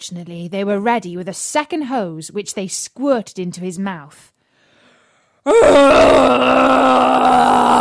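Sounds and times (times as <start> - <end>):
speech: 0.0 - 4.4, 5.4 - 7.8
narrator imitating a dragon's roar: 5.5 - 7.8.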